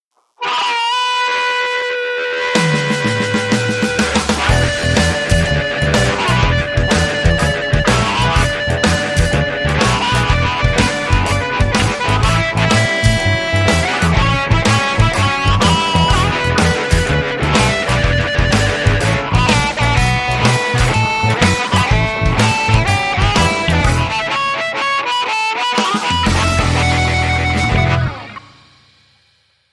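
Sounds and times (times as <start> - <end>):
gritty club blues music: 0.4 - 28.6.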